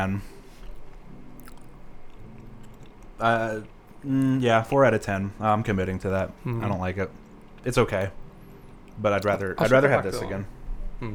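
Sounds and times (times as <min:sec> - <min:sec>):
speech: 0:00.0 - 0:00.4, 0:03.2 - 0:08.2, 0:09.0 - 0:11.1
person chewing Chipotle rice: 0:00.5 - 0:03.2, 0:06.4 - 0:09.5.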